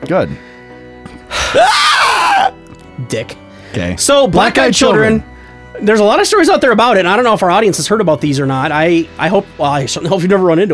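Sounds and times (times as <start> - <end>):
speech: 0.1 - 0.5, 1.5 - 1.8, 3.0 - 10.7
vocal imitation of an inhaled scream: 1.3 - 2.5.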